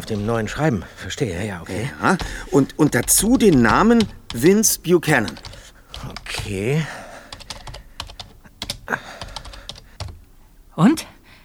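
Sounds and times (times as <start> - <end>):
fingers typing a date and name into a search engine on a computer keyboard: 0.0 - 0.6, 2.1 - 10.2
speech: 0.1 - 7.0, 10.8 - 11.1.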